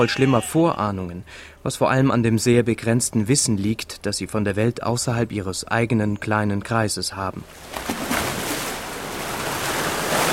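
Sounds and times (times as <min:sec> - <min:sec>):
speech: 0:00.0 - 0:08.1
Atlantic swell washing over small pier in Village Bay: 0:07.8 - 0:10.3.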